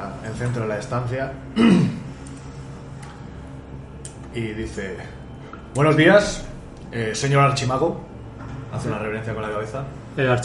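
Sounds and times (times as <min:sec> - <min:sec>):
speech: 0:00.3 - 0:02.0, 0:04.4 - 0:05.2, 0:05.8 - 0:08.1, 0:08.7 - 0:10.4
throat clearing: 0:01.5 - 0:02.1.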